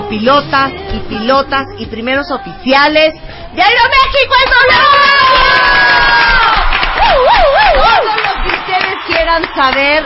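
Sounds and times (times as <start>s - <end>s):
speech: 0.1s - 6.5s, 9.1s - 10.0s
crowd clapping: 4.3s - 10.0s
crowd cheering with whoops and shouts: 4.7s - 9.4s.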